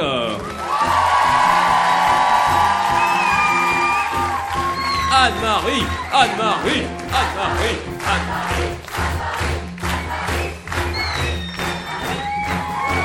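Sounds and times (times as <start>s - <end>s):
audience ovation crowd roar: 0.0s - 13.0s
audience shouts and whoops: 0.3s - 6.3s, 11.0s - 13.0s
speech: 5.2s - 8.7s.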